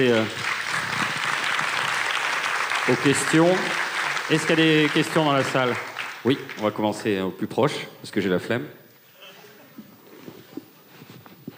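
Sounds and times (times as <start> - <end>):
speech: 0.0 - 0.5, 2.9 - 8.8
audience applause: 0.0 - 6.8.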